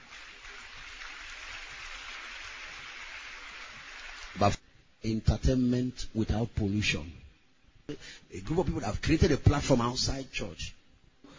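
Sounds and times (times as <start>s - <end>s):
crowd clapping: 0.0s - 4.6s
speech: 4.4s - 7.2s, 7.9s - 10.8s.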